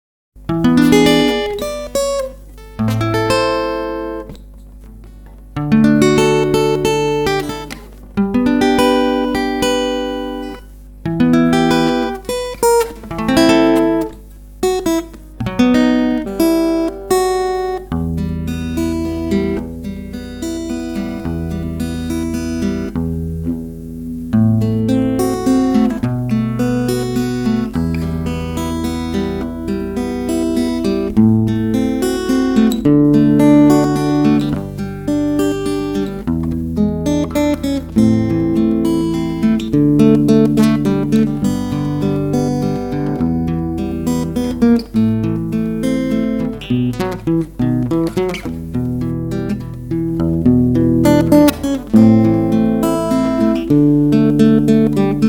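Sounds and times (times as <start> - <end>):
guitar: 0.4 - 55.2.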